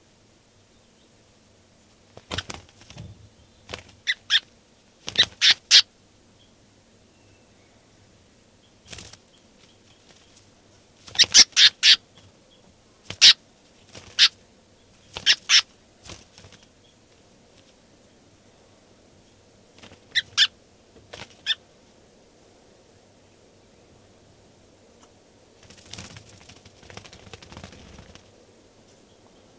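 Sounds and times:
faint low hum: 0.0 - 29.5
bird calling while held in hand: 4.0 - 4.5, 5.1 - 5.9, 11.1 - 12.0, 13.1 - 13.4, 14.0 - 14.4, 15.1 - 15.7, 20.1 - 20.6.

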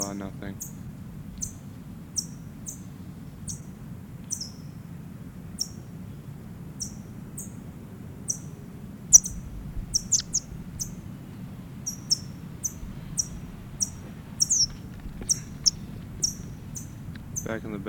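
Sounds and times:
bird chip calls: 0.0 - 4.8, 5.6 - 5.9, 6.8 - 7.6, 8.2 - 11.1, 11.8 - 17.7
steady low rumble: 7.8 - 17.8.

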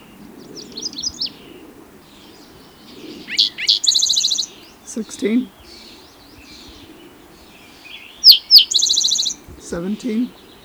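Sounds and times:
spotted towhee song: 0.0 - 10.6
speech: 5.0 - 5.6, 9.7 - 10.4.

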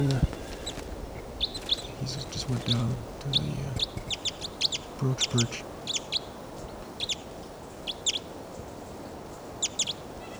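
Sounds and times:
played-back decoy bird calls: 0.0 - 6.3
steady hiss: 0.0 - 8.6
speech: 2.5 - 4.0, 5.0 - 5.7.

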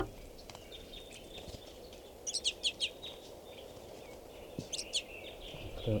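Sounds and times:
crossbills calling from a tree: 0.0 - 5.9.

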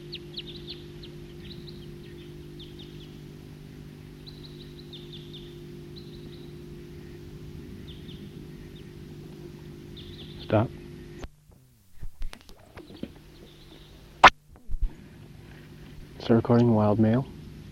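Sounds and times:
flock of wild birds calling: 0.0 - 11.3, 12.6 - 14.2
speech: 10.5 - 10.8, 16.3 - 17.3.

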